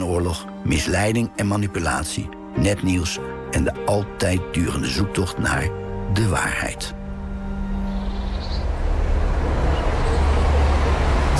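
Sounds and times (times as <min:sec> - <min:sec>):
speech: 0:00.1 - 0:07.0
traffic passing on a provincial road lined with old trees: 0:07.0 - 0:11.3.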